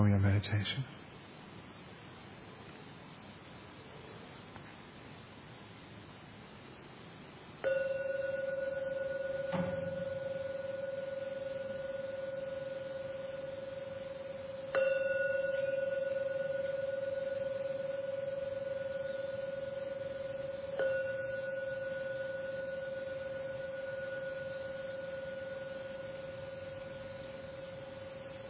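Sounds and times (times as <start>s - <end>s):
gong ringing: 7.6s - 28.4s.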